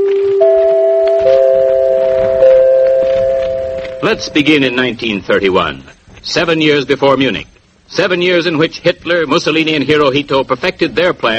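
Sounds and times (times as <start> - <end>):
broadcast chime: 0.4 - 4.7
speech: 4.0 - 11.3.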